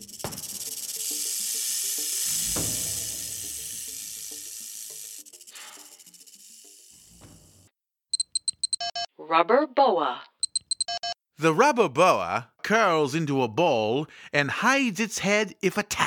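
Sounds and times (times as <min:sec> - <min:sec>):
rattlesnake hissing: 0:00.0 - 0:07.7
rattlesnake rattling its tail: 0:00.0 - 0:07.7
speech: 0:09.3 - 0:10.3, 0:11.4 - 0:16.0.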